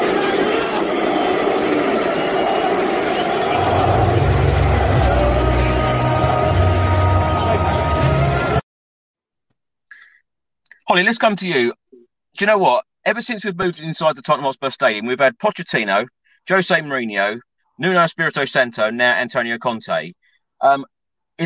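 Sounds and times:
football fans booing inside the Tottenham Hotspur Stadium: 0:00.0 - 0:08.6
speech: 0:11.0 - 0:11.8, 0:12.4 - 0:21.4.

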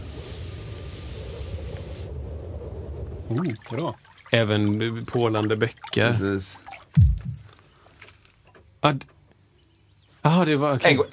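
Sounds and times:
wind sound effect: 0:00.0 - 0:04.1
speech: 0:03.3 - 0:07.1, 0:08.8 - 0:09.1, 0:10.2 - 0:11.1.

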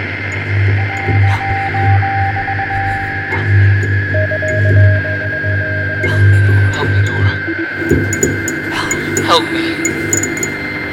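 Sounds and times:
steady loud electrical hum: 0:00.0 - 0:10.9
thin stuttering beep tone: 0:00.3 - 0:08.6.

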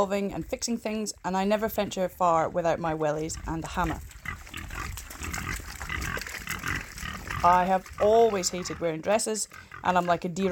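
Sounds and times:
speech: 0:00.0 - 0:04.2, 0:07.4 - 0:10.5
pigs oinking and grunting: 0:03.0 - 0:10.5.

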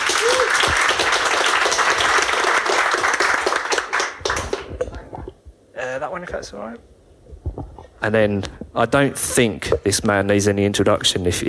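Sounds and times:
audience round of applause: 0:00.0 - 0:05.0
speech: 0:06.0 - 0:07.4, 0:08.0 - 0:11.4.

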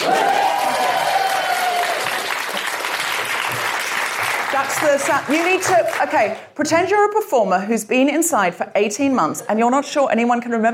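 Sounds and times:
audience clapping: 0:00.0 - 0:06.5
speech: 0:04.6 - 0:10.7.

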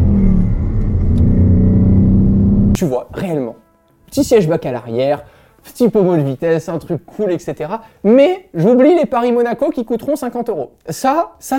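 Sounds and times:
Ford Mustang Bullitt naturally aspirated V8 engine revving: 0:00.0 - 0:02.8
speech: 0:02.8 - 0:11.5.

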